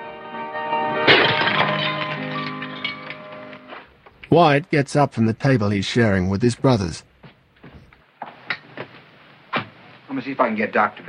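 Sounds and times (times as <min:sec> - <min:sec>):
glass fragments clinking: 0:01.0 - 0:03.8
glass hurled in a bar shattering: 0:01.0 - 0:03.9
speech: 0:04.3 - 0:07.1, 0:10.2 - 0:11.0.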